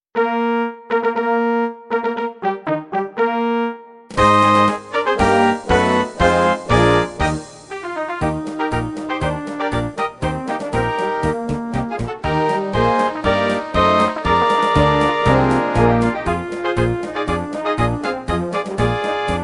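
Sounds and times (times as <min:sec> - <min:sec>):
march music: 0:00.2 - 0:19.4.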